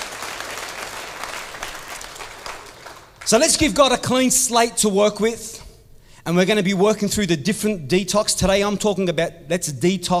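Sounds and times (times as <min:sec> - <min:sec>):
audience clapping: 0:00.0 - 0:03.6
speech: 0:03.3 - 0:05.6, 0:06.3 - 0:10.1.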